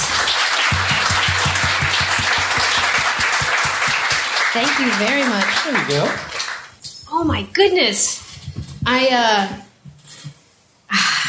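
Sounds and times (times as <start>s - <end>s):
faint rhythmic thump: 0.0s - 4.2s, 8.2s - 10.5s
crowd applauding: 0.0s - 6.8s
speech: 4.6s - 6.3s, 7.2s - 8.2s, 8.9s - 9.6s.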